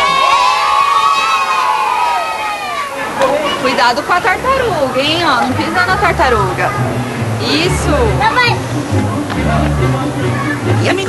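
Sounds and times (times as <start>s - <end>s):
young children shouting and squealing in a schoolyard: 0.0s - 3.9s, 10.1s - 10.7s
speech: 3.8s - 11.0s.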